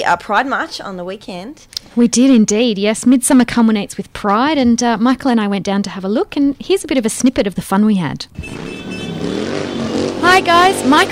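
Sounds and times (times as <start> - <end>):
speech: 0.1 - 11.1
motorcycle engines of Dykes on Bikes riders at the 2011 Pride March parade: 8.2 - 11.1.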